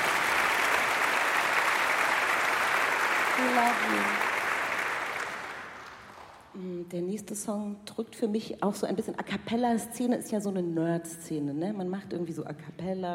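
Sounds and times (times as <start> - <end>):
audience clapping: 0.0 - 6.5
speech: 3.4 - 4.2, 6.8 - 13.1.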